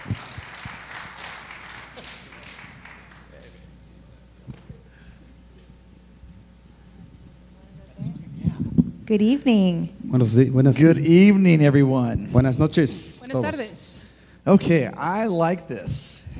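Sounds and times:
applause at a bilingual church family night welcoming two pastors: 0.0 - 3.7
speech: 9.1 - 16.3.

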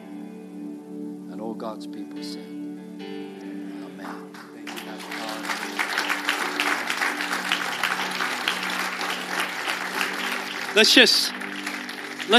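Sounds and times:
speech: 1.5 - 3.4, 10.8 - 11.4
church congregation applauding its pastor during a service: 4.0 - 12.3.

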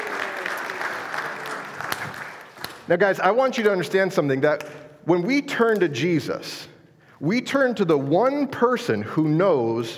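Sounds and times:
audience applause at a church youth talk: 0.0 - 2.8
speech: 2.9 - 9.9.

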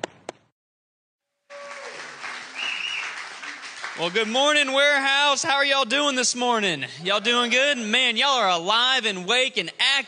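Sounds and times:
church audience applause: 1.5 - 5.4
speech: 4.0 - 10.0.

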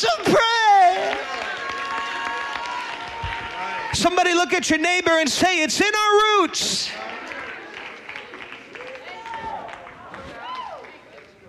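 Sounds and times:
audience clapping and applauding: 0.1 - 4.5, 6.9 - 11.4
speech: 4.0 - 7.2.

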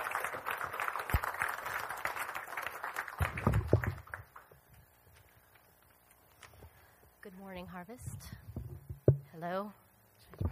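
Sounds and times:
audience applause: 0.0 - 4.5
speech: 7.8 - 8.5, 9.4 - 9.8.

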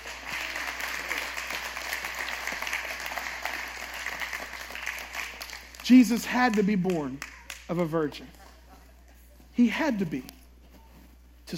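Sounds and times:
audience applause: 0.0 - 7.7
speech: 5.9 - 8.4, 9.6 - 10.4.

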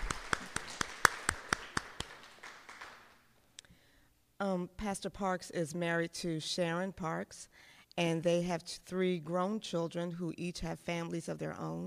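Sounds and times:
audience applause: 0.0 - 3.2
speech: 4.4 - 11.8.

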